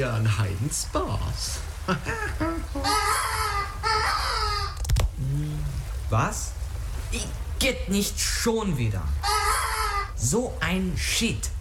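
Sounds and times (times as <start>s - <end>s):
speech: 0.0s - 3.5s, 6.1s - 9.3s, 10.2s - 11.6s
human voice imitating a seagull call: 2.2s - 5.8s, 9.2s - 10.3s.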